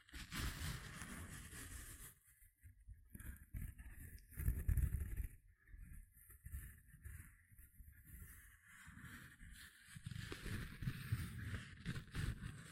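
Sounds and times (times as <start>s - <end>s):
gentle scratching: 0.0s - 12.7s.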